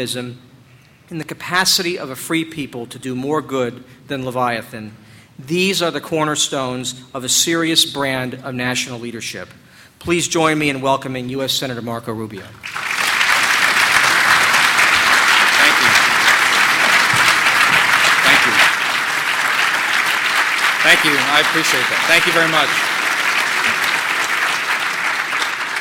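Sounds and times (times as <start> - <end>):
speech: 0.0 - 0.5, 1.1 - 12.8, 20.8 - 22.9
audience clapping: 12.6 - 25.7.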